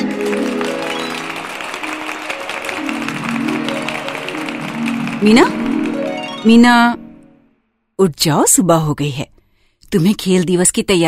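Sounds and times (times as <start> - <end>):
applause: 0.0 - 6.8
speech: 5.2 - 5.7, 6.4 - 7.0, 8.0 - 9.3, 9.9 - 11.0.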